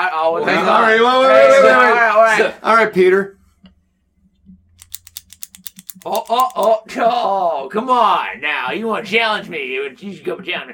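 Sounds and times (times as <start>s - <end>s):
speech: 0.3s - 3.4s, 6.0s - 10.7s
Thompson ballpoint pen with a ball action clicking: 4.8s - 6.8s.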